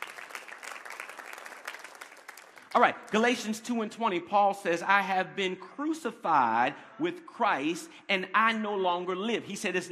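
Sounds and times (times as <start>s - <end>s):
congregation clapping during a church sermon: 0.0s - 3.8s
speech: 2.8s - 9.9s.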